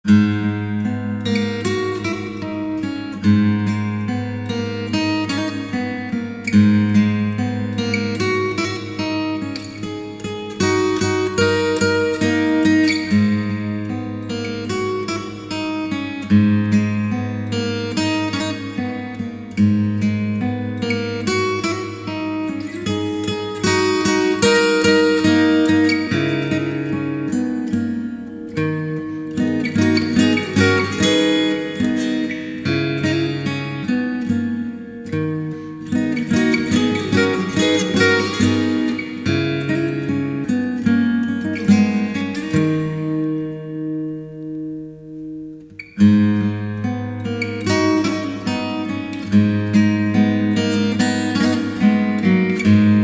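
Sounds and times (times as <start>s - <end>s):
instrumental music: 0.1s - 53.0s.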